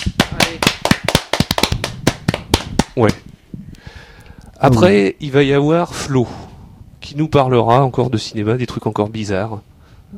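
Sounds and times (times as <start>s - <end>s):
audience applauding: 0.0s - 3.1s
speech: 3.0s - 3.3s, 4.6s - 6.4s, 7.0s - 10.1s.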